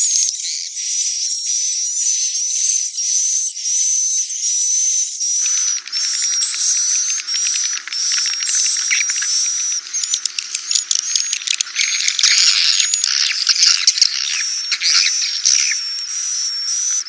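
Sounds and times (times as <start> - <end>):
swiftlet calls: 5.4 - 17.0.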